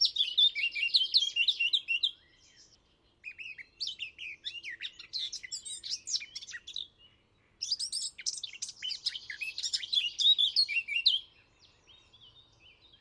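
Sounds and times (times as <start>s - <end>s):
Eurasian blackcap singing: 0.0s - 12.9s.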